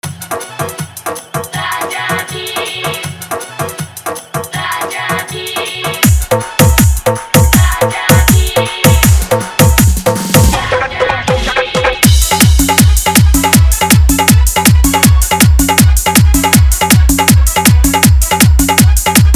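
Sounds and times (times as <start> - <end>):
dholak bass dance mix: 0.0 - 19.3.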